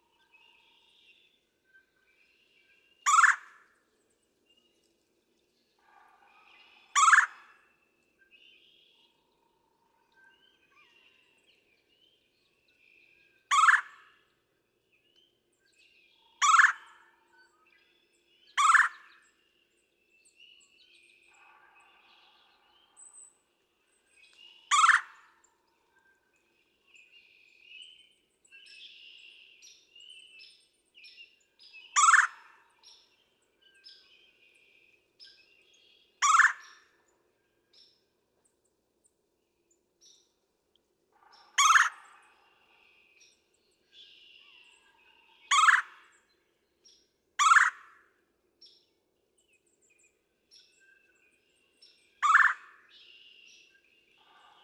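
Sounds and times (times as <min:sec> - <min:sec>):
Red-bellied woodpecker churring: 0:03.1 - 0:03.4, 0:07.0 - 0:07.3, 0:13.5 - 0:13.8, 0:18.6 - 0:19.0, 0:24.7 - 0:25.2, 0:32.0 - 0:32.3, 0:36.2 - 0:36.7, 0:41.5 - 0:42.0, 0:45.5 - 0:45.9, 0:47.4 - 0:47.8, 0:52.2 - 0:52.6
birds whistling: 0:52.2 - 0:53.7.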